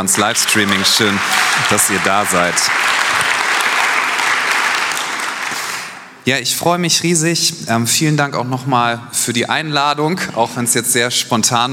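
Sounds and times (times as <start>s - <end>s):
speech: 0.0s - 3.3s, 6.3s - 11.7s
crowd applauding: 0.0s - 6.2s.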